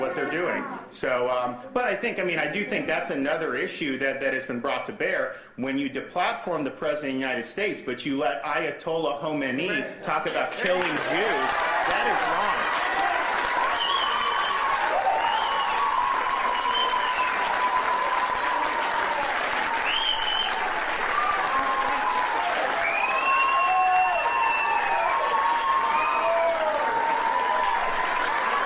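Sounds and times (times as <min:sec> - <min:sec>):
speech: 0:00.0 - 0:12.8
crowd applause: 0:10.3 - 0:28.6
cheers and whistles: 0:11.3 - 0:28.6.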